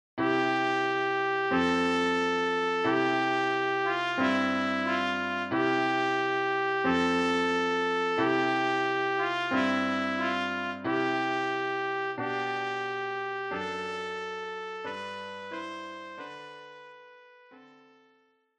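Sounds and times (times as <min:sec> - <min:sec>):
trumpet: 0:00.2 - 0:17.0.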